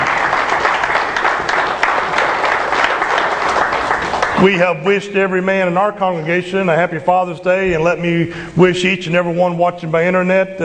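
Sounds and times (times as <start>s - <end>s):
audience applause: 0.0s - 4.6s
speech: 4.4s - 10.6s.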